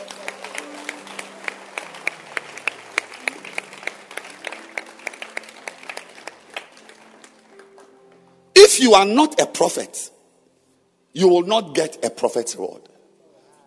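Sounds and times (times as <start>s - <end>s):
murmur of voices: 0.0s - 6.2s
audience clapping: 0.0s - 8.1s
speech: 8.8s - 10.2s, 11.2s - 12.9s.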